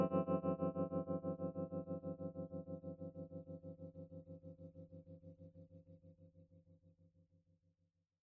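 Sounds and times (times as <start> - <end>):
humbucker electric guitar with tremolo and reverb: 0.0 - 5.4.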